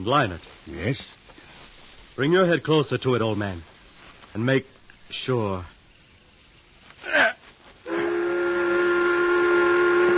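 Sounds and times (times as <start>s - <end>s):
speech: 0.0s - 1.2s, 2.2s - 3.7s, 4.4s - 5.7s
midday work steam whistle blowing: 7.9s - 10.1s.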